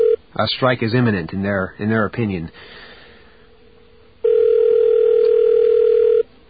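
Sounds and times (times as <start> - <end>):
speech: 0.4 - 2.8
telephone dial tone while placing call: 4.2 - 6.3.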